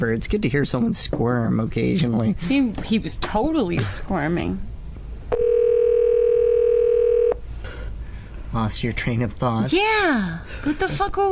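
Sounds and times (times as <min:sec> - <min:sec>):
speech: 0:00.0 - 0:04.7, 0:08.6 - 0:11.2
telephone dial tone after caller hangs up: 0:05.3 - 0:07.4.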